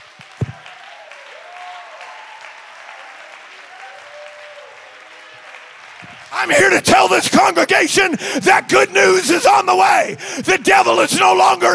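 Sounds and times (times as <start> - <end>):
audience clapping hands: 0.0 - 8.3
speech: 6.0 - 11.7.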